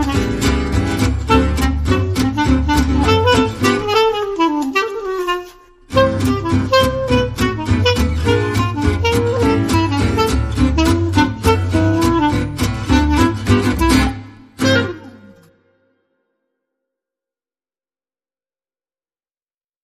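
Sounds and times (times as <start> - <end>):
clarinet playing: 0.0 - 15.8.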